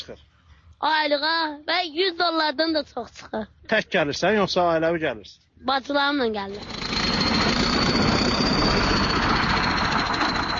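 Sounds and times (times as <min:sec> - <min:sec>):
speech: 0:00.0 - 0:06.8
tractors crushing and flattening garbage mounds at a landfill: 0:06.5 - 0:10.5.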